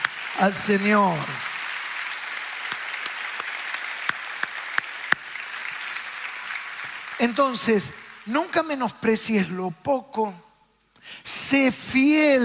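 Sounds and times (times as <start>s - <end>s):
audience applauding: 0.0s - 8.9s
speech: 0.4s - 1.5s, 7.2s - 12.4s.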